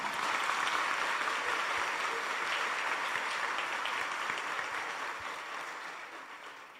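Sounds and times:
audience applause: 0.0 - 6.7.

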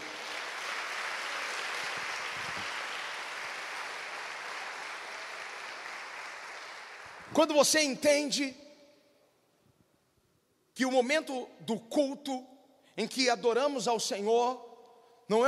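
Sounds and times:
audience applause: 0.0 - 7.4
speech: 7.3 - 8.6, 10.8 - 14.7, 15.3 - 15.4.

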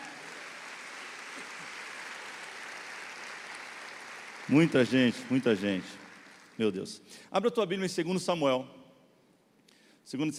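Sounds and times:
audience applause: 0.0 - 6.7
speech: 4.5 - 6.0, 6.6 - 8.8, 10.1 - 10.3.

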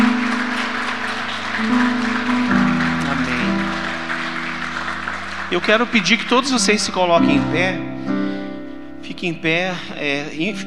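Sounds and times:
audience applause: 0.0 - 7.6
speech: 5.5 - 7.9, 9.0 - 10.6.

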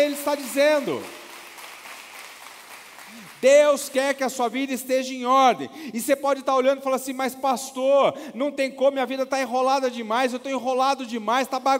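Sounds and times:
speech: 0.0 - 1.2, 3.1 - 11.7
audience applause: 0.0 - 3.6.

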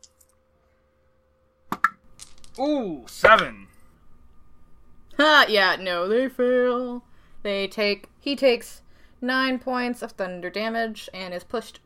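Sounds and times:
dice being rolled: 1.8 - 2.6
speech: 2.6 - 3.7, 5.2 - 11.8.

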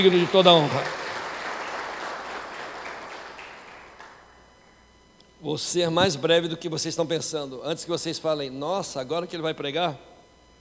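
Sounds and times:
speech: 0.0 - 1.0, 5.4 - 10.1
audience applause: 0.0 - 4.2.

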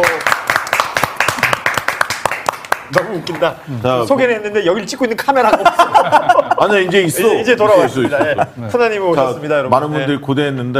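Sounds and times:
hands clapping: 0.0 - 3.5
speech: 3.1 - 10.7
laughter: 5.4 - 8.9.

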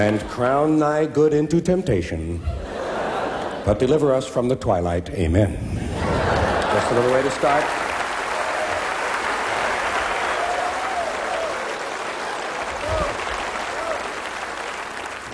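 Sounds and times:
laughter: 0.0 - 0.8, 2.3 - 4.2, 5.6 - 15.3
speech: 0.0 - 2.7, 3.6 - 5.8, 6.8 - 7.8
audience cheering and applause: 6.0 - 15.3.

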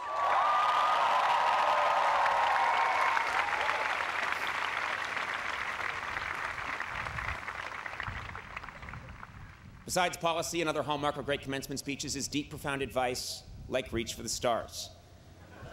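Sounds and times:
graduation audience cheering and whooping: 0.0 - 9.1
large graduation audience applause: 0.0 - 9.7
speech: 9.9 - 15.0.

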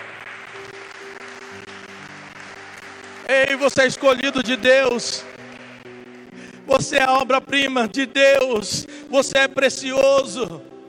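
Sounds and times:
audience applauding: 0.0 - 6.9
speech: 3.3 - 5.3, 6.7 - 10.6.

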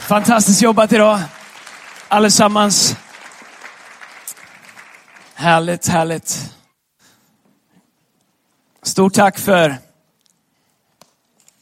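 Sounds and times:
sharp clap: 0.0 - 5.4
audience applause: 0.0 - 5.7
speech: 0.1 - 1.4, 2.1 - 3.0, 5.4 - 6.6, 8.8 - 9.9.

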